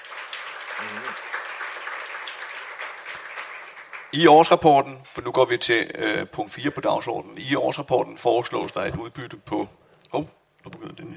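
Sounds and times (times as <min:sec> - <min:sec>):
assembly applause: 0:00.0 - 0:04.5
speech: 0:04.1 - 0:11.1.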